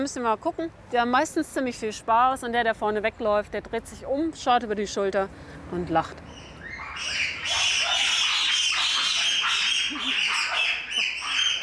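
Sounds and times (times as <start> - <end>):
speech: 0.0 - 7.6
young apes screaming at each other: 6.4 - 11.6.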